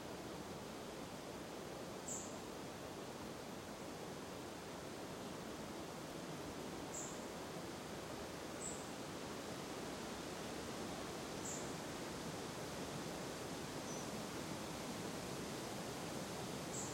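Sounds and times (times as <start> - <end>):
wind in a forest: 0.0 - 16.9.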